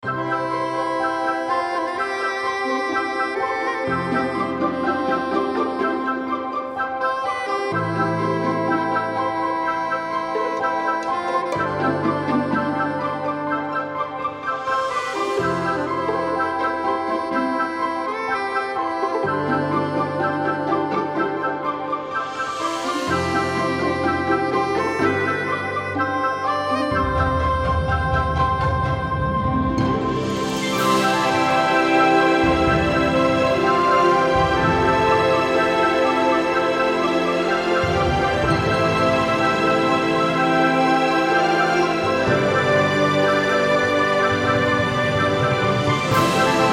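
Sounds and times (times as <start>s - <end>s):
enchanted forest romantic comedy music: 0.0s - 46.7s.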